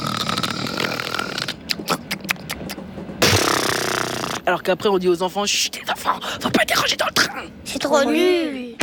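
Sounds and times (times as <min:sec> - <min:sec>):
voice imitating a man snoring on a train: 0:00.0 - 0:02.0, 0:03.2 - 0:04.5
speech: 0:04.5 - 0:08.7.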